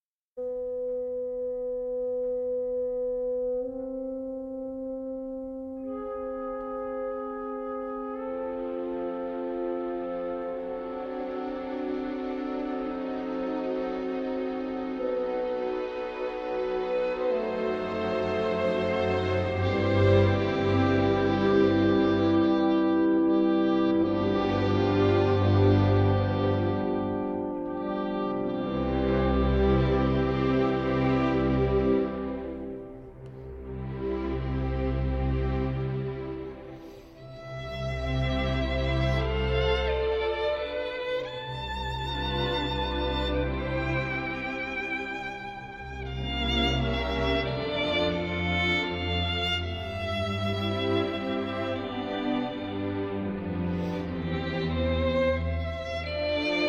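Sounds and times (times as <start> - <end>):
second movement of a violin concerto in E minor: 0.4 - 56.6.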